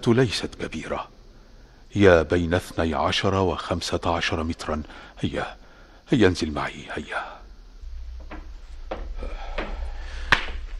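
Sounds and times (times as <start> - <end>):
speech: 0.0 - 1.1, 1.9 - 7.4
low rumble: 7.6 - 10.7
wooden knocks and scrapes of an eight-century-old cedar wood door: 8.2 - 10.6.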